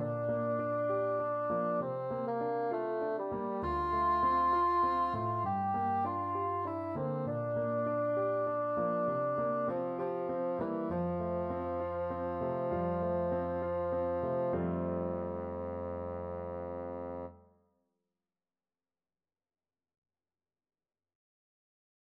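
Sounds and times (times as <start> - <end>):
bassoon: 0.0 - 17.4.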